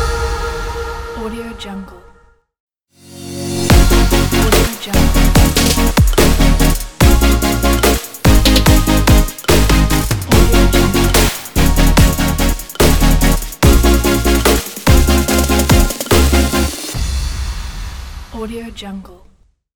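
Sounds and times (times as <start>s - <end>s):
fashion future pop logo jingle: 3.1s - 18.2s.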